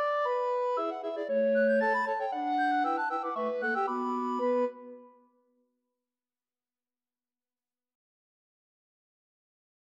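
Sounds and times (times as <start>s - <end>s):
bamboo rigadoon music: 0.0s - 5.4s.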